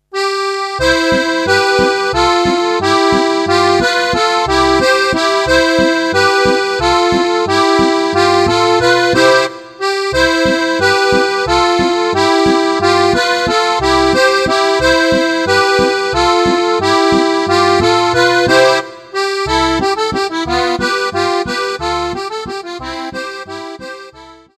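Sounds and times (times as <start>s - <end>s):
zwiefacher folk dance music: 0.0s - 24.5s.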